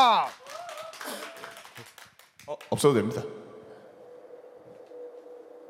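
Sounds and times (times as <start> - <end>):
speech: 0.0 - 1.2, 2.5 - 3.4
rising whoop: 0.0 - 1.6
audience clapping: 0.0 - 3.1.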